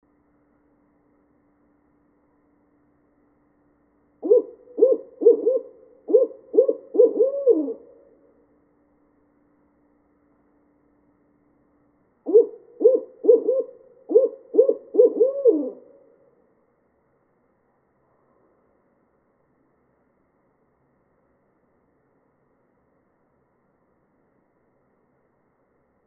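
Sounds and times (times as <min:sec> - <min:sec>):
barred owl hooting: 0:04.2 - 0:08.4, 0:12.2 - 0:16.3.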